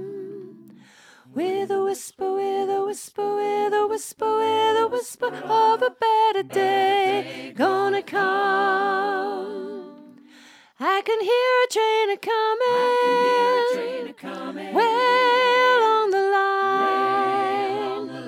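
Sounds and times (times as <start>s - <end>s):
soprano singing a learning track: 0.0s - 18.2s.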